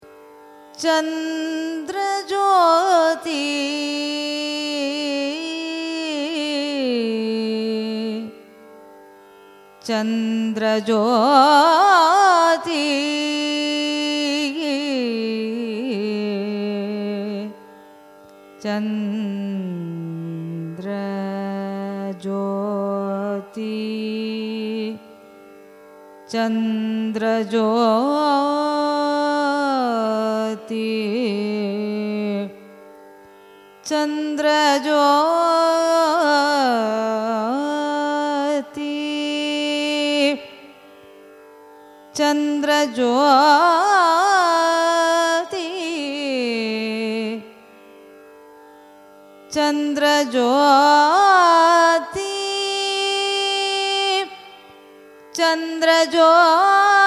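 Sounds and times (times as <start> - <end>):
carnatic music raga: 0.0 - 57.0.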